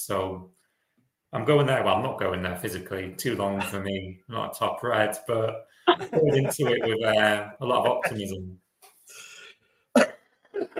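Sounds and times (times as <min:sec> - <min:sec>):
speech: 0:00.0 - 0:00.6, 0:01.3 - 0:09.2
laughter: 0:03.4 - 0:03.8, 0:05.9 - 0:08.4
person coughing from a chest infection: 0:06.0 - 0:06.9, 0:07.9 - 0:08.2, 0:10.0 - 0:10.7.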